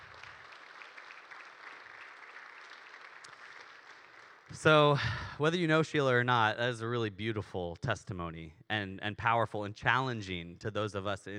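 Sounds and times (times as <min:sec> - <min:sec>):
audience clapping: 0:00.0 - 0:05.0
speech: 0:04.5 - 0:11.3.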